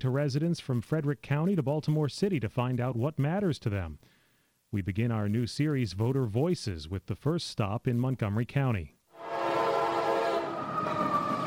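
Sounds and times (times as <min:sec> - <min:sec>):
speech: 0:00.0 - 0:09.0
MARC commuter rail train horn chord: 0:09.2 - 0:11.4.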